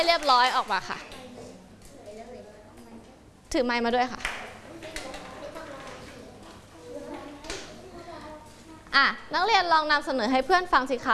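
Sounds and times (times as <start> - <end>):
speech: 0.0 - 1.2, 3.5 - 4.4, 8.9 - 11.1
classroom of children clapping: 4.2 - 6.0.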